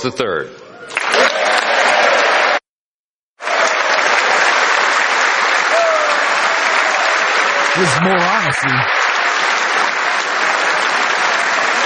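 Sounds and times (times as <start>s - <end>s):
speech: 0.0s - 1.3s, 7.8s - 9.0s
audience applause in a legislative chamber: 0.9s - 2.6s, 3.4s - 11.8s.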